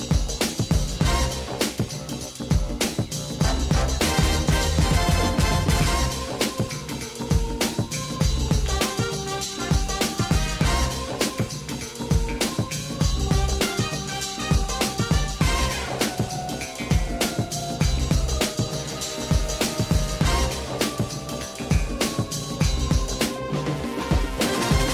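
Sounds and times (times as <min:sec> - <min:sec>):
remix music loop in ADPCM: 0:00.0 - 0:24.9.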